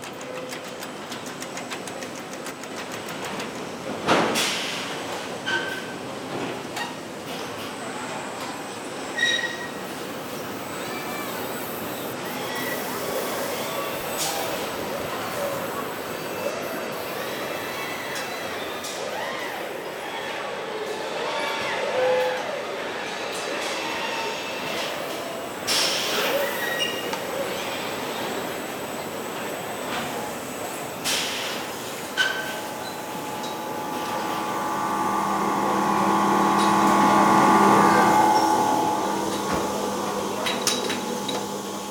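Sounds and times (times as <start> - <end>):
car factory robots and machinery at the Georges Besse Renault Douai plant: 0.0 - 41.9.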